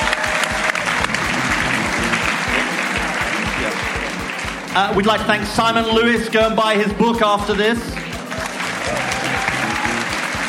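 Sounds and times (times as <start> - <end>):
audience round of applause: 0.0 - 5.5, 7.9 - 10.4
speech: 4.8 - 8.0.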